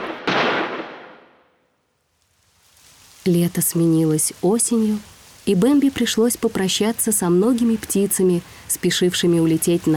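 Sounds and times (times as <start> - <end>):
gunshots: 0.0 - 1.4
speech: 3.2 - 9.9.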